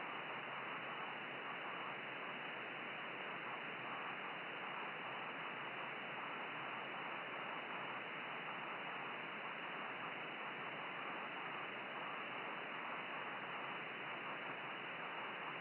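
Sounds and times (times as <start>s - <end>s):
10 GHz radio rain scatter signal: 0.0s - 15.6s.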